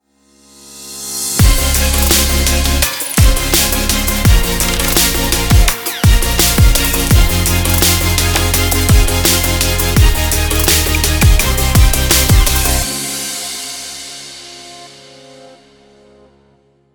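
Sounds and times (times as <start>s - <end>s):
urban future bass music: 1.4s - 13.0s.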